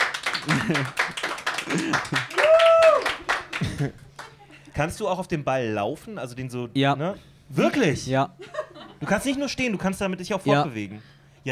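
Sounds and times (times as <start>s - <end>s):
small crowd clapping: 0.0s - 4.6s
laughter: 0.3s - 2.6s, 3.4s - 4.7s, 8.4s - 9.9s
speech: 0.4s - 2.6s, 3.6s - 4.1s, 4.8s - 11.5s.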